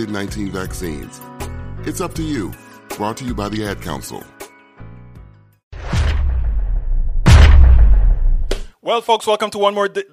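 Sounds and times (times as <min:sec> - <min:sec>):
speech: 0:00.0 - 0:04.4, 0:08.9 - 0:10.1
thunder boom: 0:05.8 - 0:08.7.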